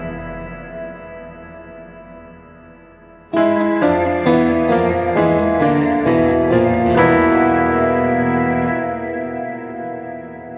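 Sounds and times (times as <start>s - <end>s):
tritone scale examples played: 3.1s - 10.5s.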